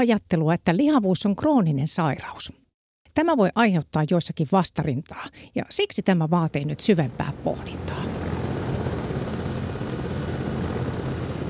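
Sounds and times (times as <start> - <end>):
speech: 0.0 - 2.6, 3.2 - 8.2
medical helicopter approaching to land on a rooftop: 6.6 - 11.4.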